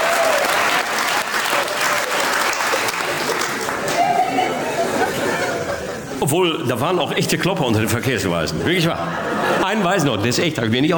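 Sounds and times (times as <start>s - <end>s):
audience applause: 0.0s - 5.6s
laughter: 2.8s - 7.0s, 7.7s - 10.9s
speech: 6.3s - 10.9s.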